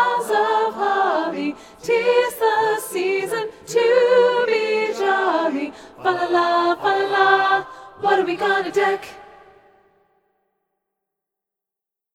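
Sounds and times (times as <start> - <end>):
alto voice singing carol learning track: 0.0 - 9.5.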